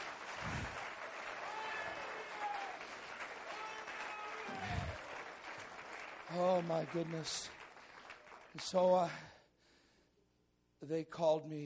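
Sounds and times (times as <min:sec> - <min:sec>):
audience clapping: 0:00.0 - 0:09.2
speech: 0:06.3 - 0:07.6, 0:08.5 - 0:09.4, 0:10.8 - 0:11.6.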